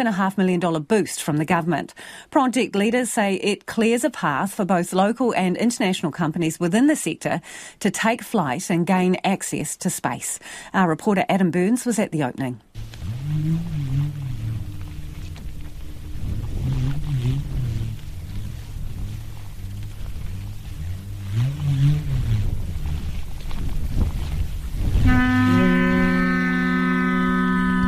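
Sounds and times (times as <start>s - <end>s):
speech: 0.0s - 14.3s
pūtātara conch trumpet blast: 12.8s - 22.5s, 24.8s - 27.8s
Māori pūrerehua bullroarer whirring at the Tāwhaki National Aerospace Centre launch: 12.8s - 27.8s.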